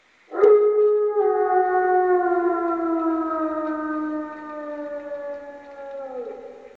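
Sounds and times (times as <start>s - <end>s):
alpha wolf: 0.3s - 6.7s.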